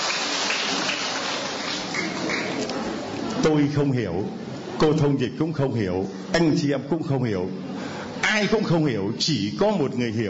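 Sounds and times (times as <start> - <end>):
applause: 0.0 - 2.7
speech: 3.4 - 7.7, 8.4 - 10.2.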